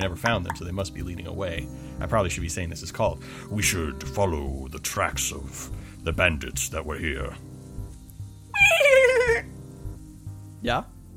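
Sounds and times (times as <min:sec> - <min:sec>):
speech: 0:00.0 - 0:07.5, 0:10.6 - 0:10.9
voice imitating a horse with a dolphin-like squeal: 0:08.6 - 0:09.5.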